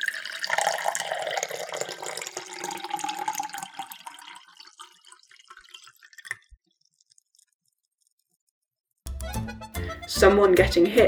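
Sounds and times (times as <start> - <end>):
person urinating: 0.0 - 7.4
speech: 10.1 - 11.0.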